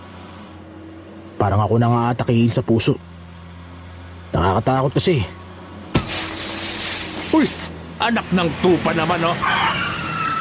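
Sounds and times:
speech: 0:01.4 - 0:03.2, 0:04.3 - 0:05.4, 0:07.4 - 0:09.9
tire blowout bang: 0:05.9 - 0:07.8
air hissing from a blown tire: 0:06.0 - 0:08.0.

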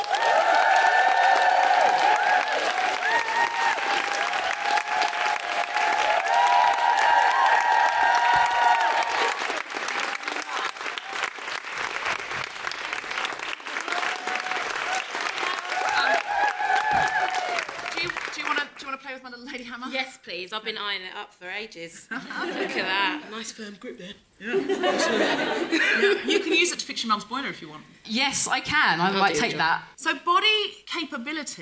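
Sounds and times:
audience applause: 0:00.0 - 0:18.8
speech: 0:20.3 - 0:31.6
laughter: 0:22.1 - 0:23.2, 0:24.4 - 0:26.6.

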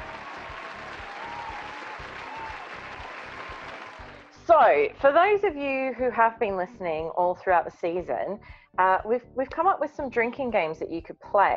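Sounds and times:
group applause: 0:00.0 - 0:04.4
crowd noise hum: 0:00.0 - 0:04.5
speech: 0:04.5 - 0:11.5.

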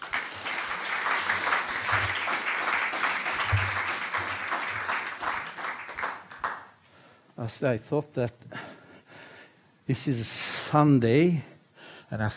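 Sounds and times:
audience applause welcoming speakers at Oslo's House of Literature: 0:00.0 - 0:06.7
speech: 0:07.4 - 0:08.6, 0:09.9 - 0:11.5, 0:12.1 - 0:12.3.

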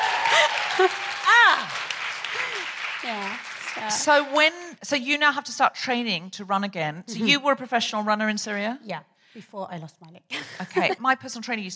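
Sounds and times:
whoops and cheering: 0:00.0 - 0:02.7
crowd applause: 0:00.0 - 0:04.5
speech: 0:00.8 - 0:01.8, 0:03.0 - 0:11.7.

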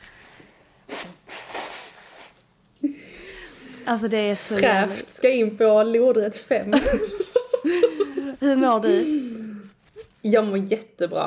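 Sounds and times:
person blowing nose: 0:00.0 - 0:02.4
speech: 0:03.9 - 0:09.3, 0:10.2 - 0:11.2
laughter: 0:06.7 - 0:09.2.

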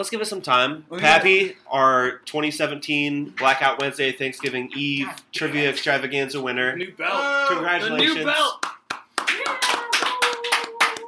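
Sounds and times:
speech: 0:00.0 - 0:08.8
sparse applause: 0:08.2 - 0:11.0.

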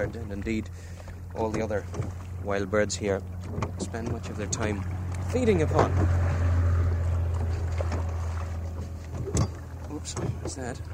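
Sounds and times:
speech: 0:00.0 - 0:06.4, 0:10.0 - 0:10.9
low rumble of wind and water: 0:00.0 - 0:10.9
oars knocking in rowlocks of a rowboat: 0:00.0 - 0:10.9.

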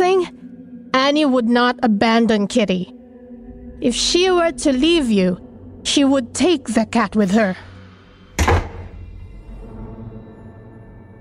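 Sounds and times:
speech: 0:01.1 - 0:03.0, 0:03.8 - 0:07.7
door slamming shut: 0:08.4 - 0:09.0.

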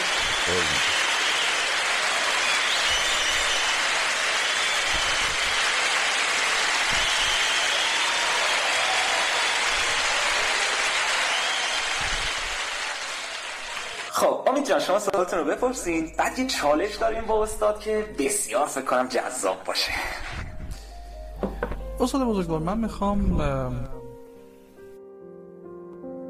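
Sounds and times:
crowd clapping: 0:00.0 - 0:14.2
speech: 0:00.5 - 0:01.0, 0:14.7 - 0:20.2, 0:22.0 - 0:24.0.

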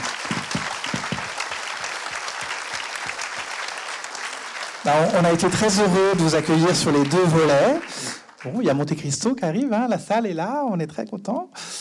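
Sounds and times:
audience applause: 0:00.0 - 0:08.9
speech: 0:04.8 - 0:11.7.

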